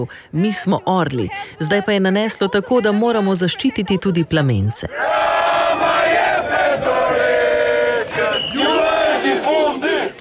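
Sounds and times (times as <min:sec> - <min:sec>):
speech: 0:00.0 - 0:05.8
protest crowd chanting: 0:04.9 - 0:10.1.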